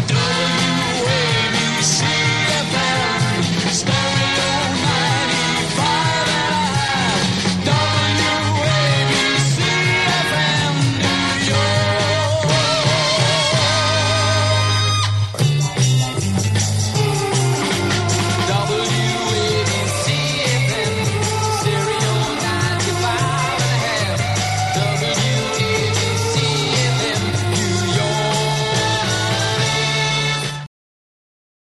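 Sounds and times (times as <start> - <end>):
jingle: 0.1 - 30.7.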